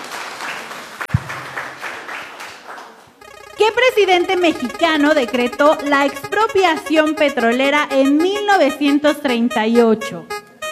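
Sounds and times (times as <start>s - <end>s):
applause: 0.0s - 3.2s
speech: 3.6s - 10.3s.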